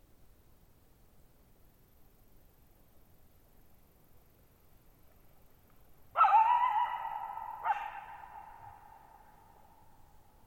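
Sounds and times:
coyote bark-howling: 0:06.1 - 0:09.9.

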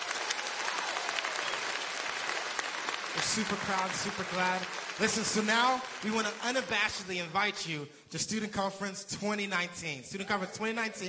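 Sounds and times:
crowd applause: 0:00.0 - 0:07.4
speech: 0:03.2 - 0:11.0.

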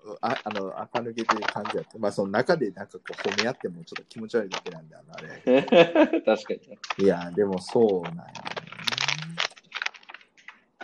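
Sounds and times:
person crunching potato chips: 0:00.2 - 0:02.2, 0:03.0 - 0:04.8, 0:06.8 - 0:10.8
speech: 0:00.2 - 0:08.6
paper bag rustling: 0:00.3 - 0:02.0, 0:03.1 - 0:04.8, 0:06.8 - 0:10.5
laughter: 0:04.2 - 0:06.8.

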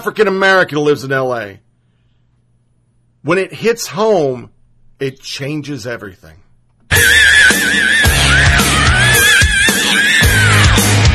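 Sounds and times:
speech: 0:00.0 - 0:01.6, 0:03.2 - 0:08.7
person screaming: 0:06.9 - 0:11.1.

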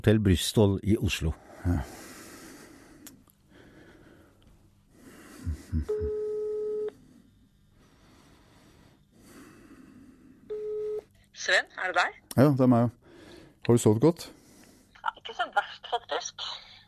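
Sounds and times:
speech: 0:00.0 - 0:02.0, 0:11.8 - 0:13.0, 0:13.6 - 0:14.4
person snorting: 0:05.2 - 0:06.3
electronic telephone ring: 0:06.0 - 0:06.9, 0:10.5 - 0:11.0.

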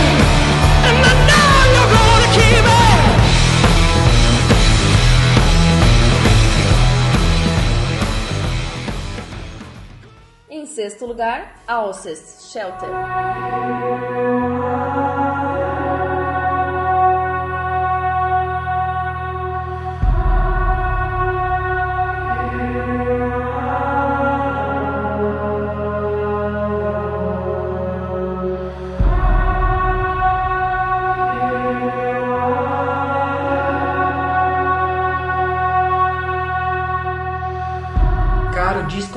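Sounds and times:
ambient album music with layered chords over drone: 0:00.0 - 0:39.1
speech: 0:11.0 - 0:16.2.

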